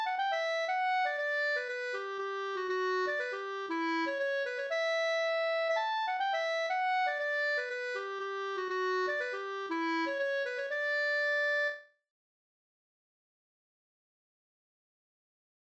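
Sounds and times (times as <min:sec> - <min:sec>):
Rorospols folk dance tune: 0:00.0 - 0:11.7.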